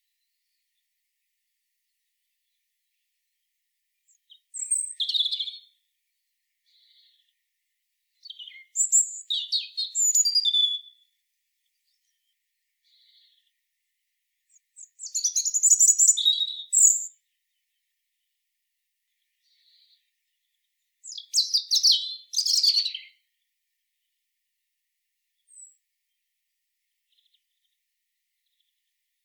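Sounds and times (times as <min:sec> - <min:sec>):
European robin Erithacus rubecula singing high sweet whistles and jumbled trills: 0:04.1 - 0:05.7, 0:08.2 - 0:11.0, 0:14.5 - 0:17.2, 0:21.0 - 0:23.2, 0:25.5 - 0:25.8.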